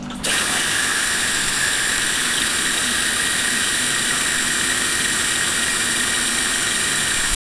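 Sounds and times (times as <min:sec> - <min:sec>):
Indian water handpump: 0:00.2 - 0:07.4.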